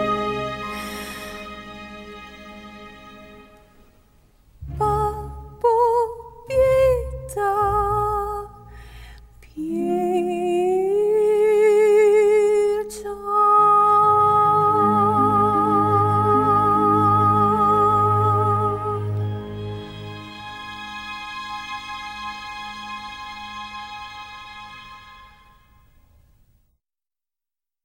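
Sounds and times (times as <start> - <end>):
untrained alto singing opera as a soprano: 4.7 - 8.8, 9.4 - 19.3.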